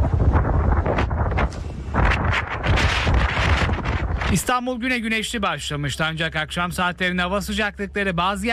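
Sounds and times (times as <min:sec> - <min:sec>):
strong gusting wind from a cold air wave: 0:00.0 - 0:04.9
speech: 0:04.3 - 0:08.5.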